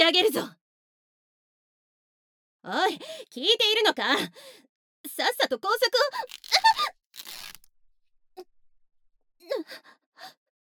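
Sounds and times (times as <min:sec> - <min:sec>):
speech: 0:00.1 - 0:00.6, 0:02.6 - 0:07.0, 0:09.5 - 0:10.4
princess knight's clothing being torn in a fantasy drama: 0:06.1 - 0:07.7.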